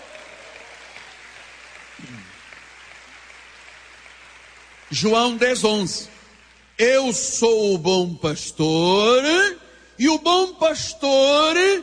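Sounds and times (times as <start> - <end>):
audience clapping: 0.0 - 6.8
speech: 2.0 - 2.4, 4.9 - 6.2, 6.8 - 11.8.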